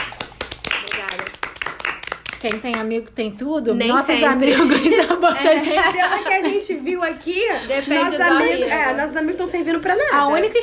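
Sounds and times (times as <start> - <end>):
hand claps: 0.0 - 2.9
speech: 2.4 - 10.6
laughter: 4.4 - 8.6.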